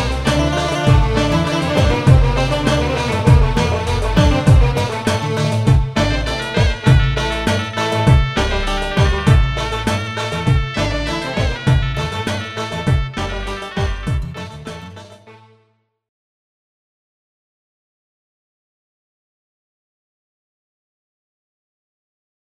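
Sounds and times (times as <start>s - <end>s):
Turkish arabesk music: 0.0s - 15.7s.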